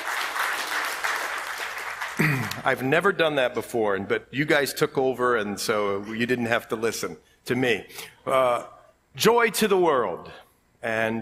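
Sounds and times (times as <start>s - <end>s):
audience clapping: 0.0s - 2.9s
speech: 2.2s - 11.2s.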